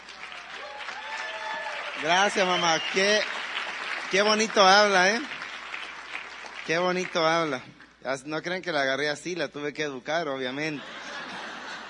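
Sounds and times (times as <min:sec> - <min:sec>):
audience applause: 0:00.0 - 0:07.7
speech: 0:02.0 - 0:03.4, 0:04.1 - 0:05.3, 0:06.6 - 0:11.0
laughter: 0:10.7 - 0:11.8.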